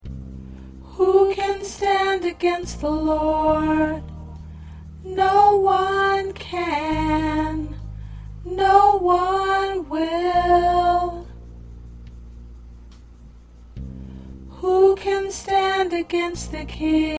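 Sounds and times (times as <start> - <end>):
soprano singing: 0.8 - 4.1, 5.0 - 7.8, 8.4 - 11.4, 14.5 - 17.1.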